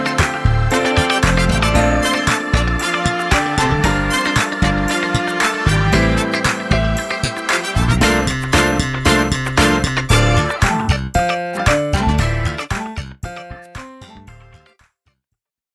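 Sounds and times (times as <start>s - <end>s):
groove music without drums: 0.0s - 14.6s.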